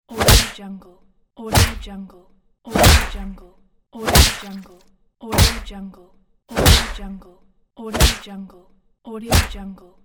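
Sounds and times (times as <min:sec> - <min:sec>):
hard punch: 0:00.1 - 0:00.6, 0:01.5 - 0:01.9, 0:02.7 - 0:03.4, 0:04.0 - 0:04.6, 0:05.4 - 0:05.7, 0:06.6 - 0:07.2, 0:08.0 - 0:08.3, 0:09.3 - 0:09.6.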